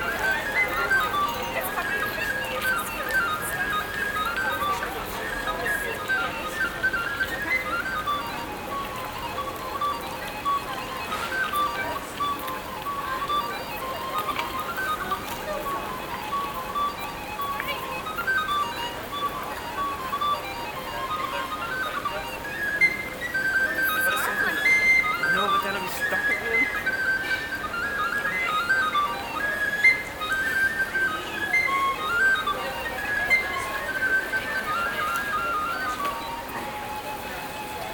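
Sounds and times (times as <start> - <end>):
tin whistle played by a busker in Belfast: 0.0 - 37.9.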